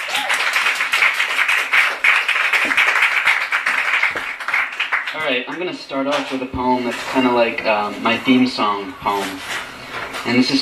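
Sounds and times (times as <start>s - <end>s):
audience applause for arriving poet: 0.0s - 5.7s
speech: 5.2s - 9.6s, 10.2s - 10.5s.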